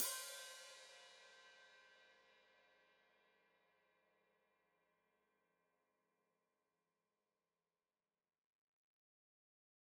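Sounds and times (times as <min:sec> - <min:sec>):
open hi-hat played with foot: 0:00.0 - 0:01.1.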